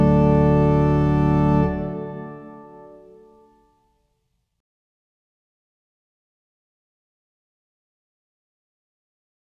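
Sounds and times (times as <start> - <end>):
trumpet in D playing: 0.0 - 3.4.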